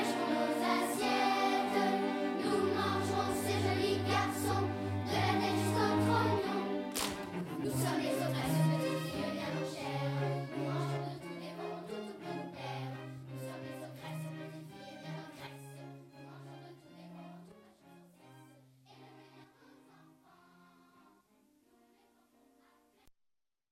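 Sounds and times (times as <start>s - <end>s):
vocal ensemble singing variety jazz: 0.0s - 17.4s.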